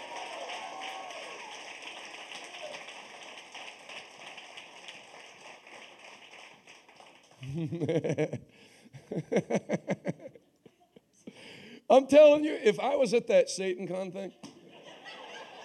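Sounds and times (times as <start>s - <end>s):
audience hand clapping: 0.0s - 8.3s
speech: 7.4s - 10.2s, 11.9s - 14.5s
laughter: 7.4s - 11.0s, 14.6s - 15.6s.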